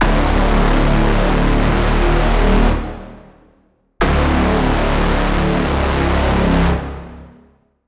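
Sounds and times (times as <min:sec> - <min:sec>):
braam: 0:00.0 - 0:07.5.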